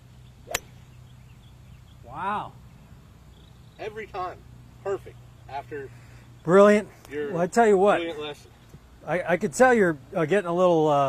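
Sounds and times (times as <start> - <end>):
golf club hitting a golf ball on a swing: 0.5 - 0.8
speech: 2.1 - 2.6, 3.8 - 11.0.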